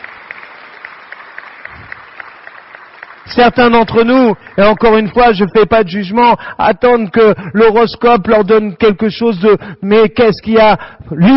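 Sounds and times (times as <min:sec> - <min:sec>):
audience applause: 0:00.0 - 0:05.8
speech: 0:03.3 - 0:11.3.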